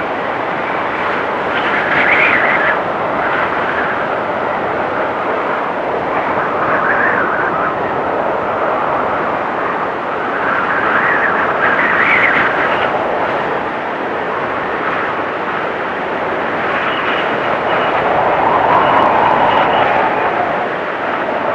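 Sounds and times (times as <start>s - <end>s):
cold wind storm: 0.0s - 21.5s.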